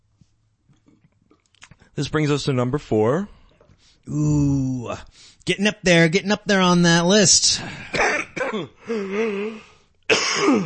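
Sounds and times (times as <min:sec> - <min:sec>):
speech: 0:02.0 - 0:03.4, 0:04.0 - 0:10.6
person groaning hum: 0:04.1 - 0:04.8, 0:08.8 - 0:09.8
person getting over a cold coughing: 0:07.6 - 0:09.5, 0:10.1 - 0:10.6.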